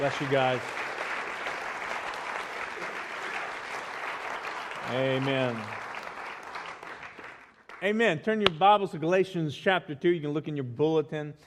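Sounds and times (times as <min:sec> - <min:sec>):
speech: 0:00.0 - 0:00.8, 0:04.9 - 0:05.8, 0:07.8 - 0:11.4
audience applause: 0:00.0 - 0:07.8.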